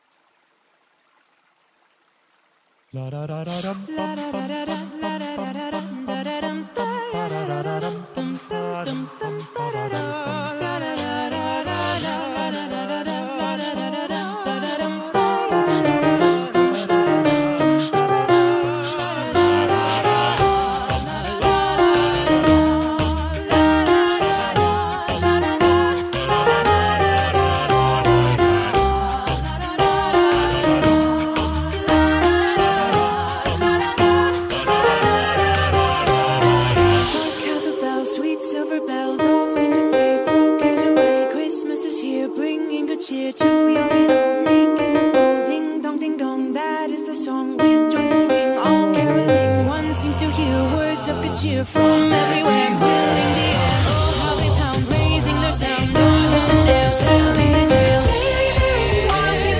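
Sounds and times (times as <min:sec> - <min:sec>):
Christmas carol: 0:03.0 - 0:59.5.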